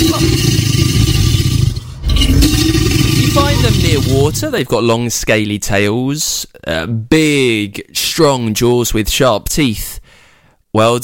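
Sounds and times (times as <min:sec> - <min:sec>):
alligator roaring: 0:00.0 - 0:04.6
speech: 0:04.2 - 0:10.0, 0:10.8 - 0:11.0.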